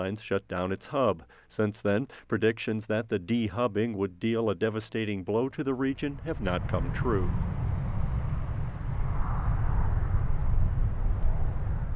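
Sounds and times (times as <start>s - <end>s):
speech: 0.0s - 7.6s
airplane departing Cleveland Hopkins International Airport: 5.9s - 11.9s.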